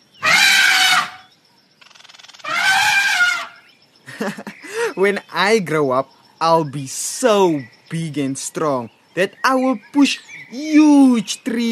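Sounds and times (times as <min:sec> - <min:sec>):
elephant trumpeting: 0:00.2 - 0:01.3, 0:02.4 - 0:03.6
laughter: 0:04.1 - 0:05.0
speech: 0:04.2 - 0:11.6.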